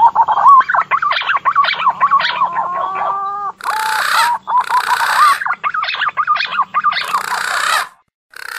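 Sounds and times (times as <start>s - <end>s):
green pigeon whistling: 0.0s - 8.0s.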